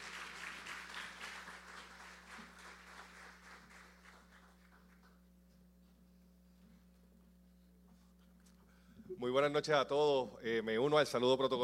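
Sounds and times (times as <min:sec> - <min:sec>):
audience applause for the mayor: 0:00.0 - 0:05.1
low steady hum: 0:00.0 - 0:11.6
speech: 0:09.1 - 0:11.6.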